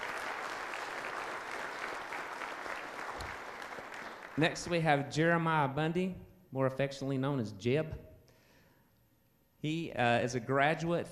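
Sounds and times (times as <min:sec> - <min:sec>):
audience applause: 0:00.0 - 0:04.7
speech: 0:04.4 - 0:08.0, 0:09.6 - 0:11.1.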